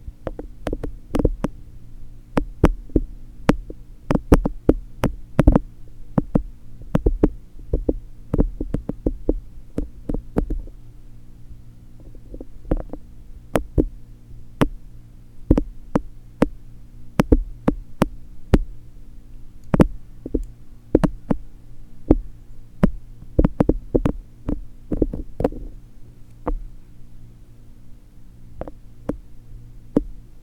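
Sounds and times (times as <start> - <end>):
steady low hum: 0.0 - 30.4
fluffy ear cleaning crackles and soft thumps: 0.2 - 1.6, 2.4 - 10.8, 12.0 - 14.0, 15.5 - 16.6, 17.2 - 18.7, 19.7 - 21.4, 22.1 - 25.8, 26.4 - 26.6.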